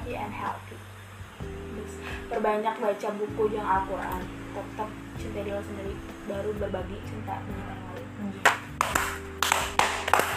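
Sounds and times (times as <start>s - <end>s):
speech: 0.1s - 8.6s
hand clapping applause: 8.4s - 10.3s.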